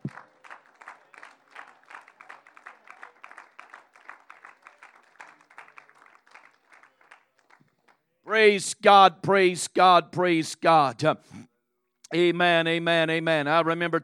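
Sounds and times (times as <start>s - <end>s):
audience clapping hands: 0.0s - 8.1s
speech: 8.3s - 11.4s, 12.1s - 14.0s.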